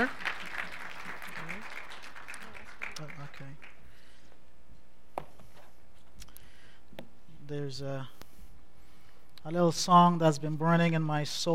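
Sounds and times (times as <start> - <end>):
speech: 0.0 - 0.2, 7.5 - 8.2, 9.4 - 11.5
audience applause: 0.0 - 3.8.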